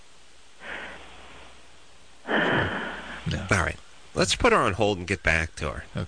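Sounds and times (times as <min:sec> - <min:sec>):
sleeping woman snoring over a phone line: 0:02.3 - 0:03.2
speech: 0:03.3 - 0:06.0.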